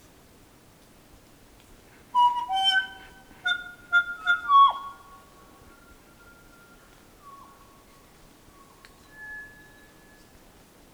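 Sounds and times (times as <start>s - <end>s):
kokako call: 2.2s - 7.4s.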